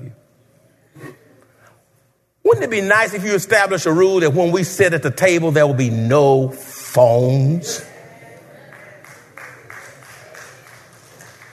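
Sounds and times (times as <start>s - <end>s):
speech: 2.6s - 7.9s
few people clapping: 8.4s - 11.5s.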